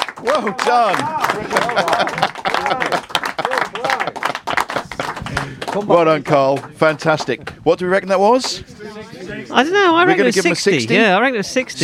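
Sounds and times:
small audience clapping: 0:00.0 - 0:07.7
voices talking and cheering: 0:00.0 - 0:11.8
speech: 0:00.2 - 0:03.0, 0:05.4 - 0:08.8, 0:09.4 - 0:11.8
laughter: 0:00.2 - 0:05.9, 0:08.7 - 0:10.8.

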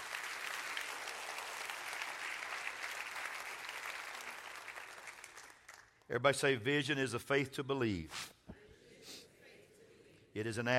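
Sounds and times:
audience clapping hands: 0:00.0 - 0:06.1
speech: 0:06.1 - 0:08.4, 0:10.4 - 0:10.7.

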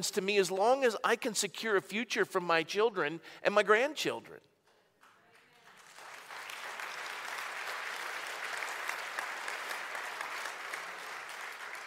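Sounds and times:
speech: 0:00.0 - 0:04.5
audience clapping: 0:05.0 - 0:11.8.

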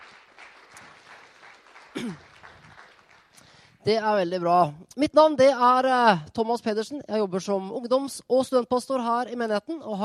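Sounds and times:
crowd applauding: 0:00.0 - 0:03.6
speech: 0:02.0 - 0:02.3, 0:03.8 - 0:10.0.

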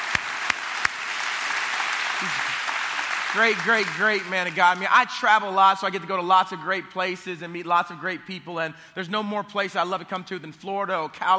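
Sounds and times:
audience applause: 0:00.0 - 0:04.7
speech: 0:02.2 - 0:02.5, 0:03.3 - 0:11.3.

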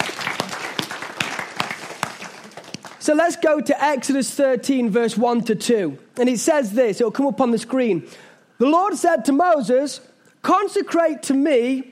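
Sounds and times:
audience clapping: 0:00.0 - 0:03.2
speech: 0:03.1 - 0:11.8.

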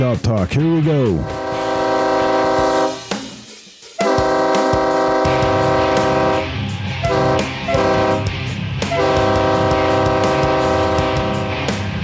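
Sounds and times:
speech: 0:00.0 - 0:01.5
train horn blasts: 0:01.2 - 0:03.1, 0:04.0 - 0:11.9.

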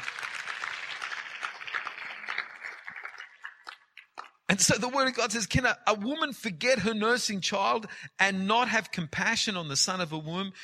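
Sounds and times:
audience applauding: 0:00.0 - 0:04.4
speech: 0:04.5 - 0:10.6.

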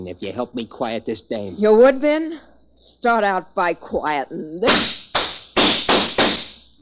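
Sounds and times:
speech: 0:00.0 - 0:05.0
gunshots in an old-time detective radio drama: 0:04.7 - 0:06.6.

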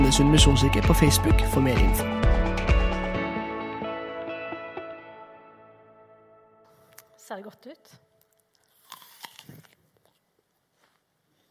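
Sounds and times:
speech: 0:00.1 - 0:02.4, 0:07.4 - 0:08.1
person chewing and eating food: 0:08.2 - 0:11.4.

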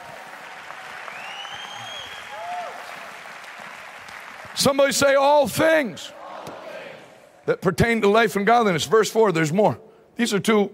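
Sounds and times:
audience hand clapping: 0:00.0 - 0:05.2
speech: 0:04.6 - 0:06.2, 0:07.5 - 0:10.7.

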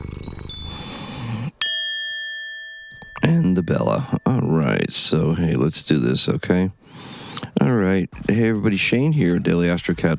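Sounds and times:
cat purring: 0:00.0 - 0:01.6
chimes: 0:00.0 - 0:05.2
speech: 0:03.3 - 0:10.1.

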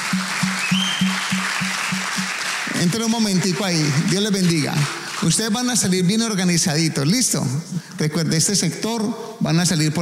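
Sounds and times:
audience applause: 0:00.0 - 0:06.0
speech: 0:02.8 - 0:10.0.

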